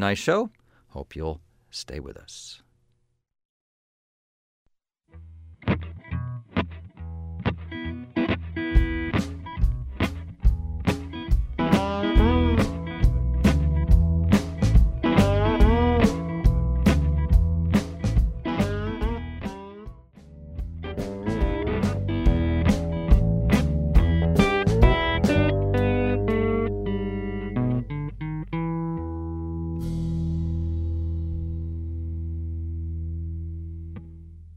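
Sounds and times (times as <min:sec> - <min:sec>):
speech: 0:00.0 - 0:02.6
blues song played on air: 0:05.6 - 0:19.8, 0:20.6 - 0:32.6.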